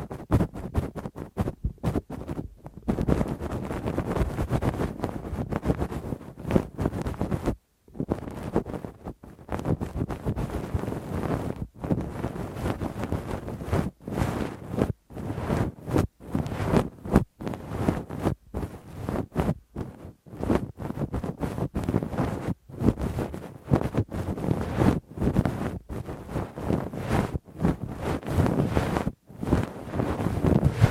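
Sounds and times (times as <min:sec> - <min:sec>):
Q-tip and ear pick rubbing deep in the ear: 0:00.0 - 0:30.8.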